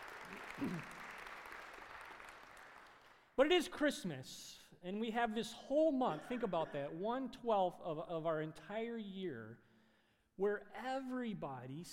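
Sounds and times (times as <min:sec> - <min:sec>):
audience applause: 0:00.0 - 0:03.2
speech: 0:00.3 - 0:01.0, 0:03.4 - 0:09.7, 0:10.4 - 0:11.9.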